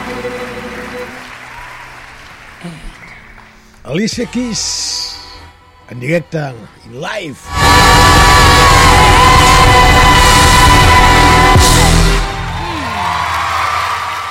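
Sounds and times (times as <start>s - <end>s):
live concert audience applause and cheering: 0.0s - 4.0s, 7.5s - 14.2s
speech: 3.9s - 5.0s, 5.9s - 7.6s.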